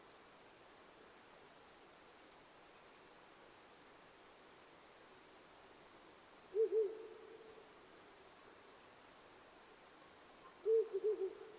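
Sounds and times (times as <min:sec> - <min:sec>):
owl giving low soft hoots: 0:06.5 - 0:07.7, 0:10.4 - 0:11.5.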